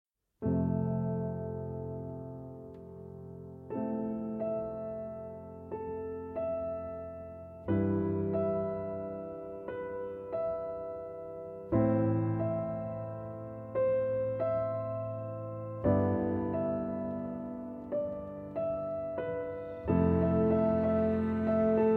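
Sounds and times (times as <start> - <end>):
piano: 0.4 - 21.9
cello: 18.0 - 21.9.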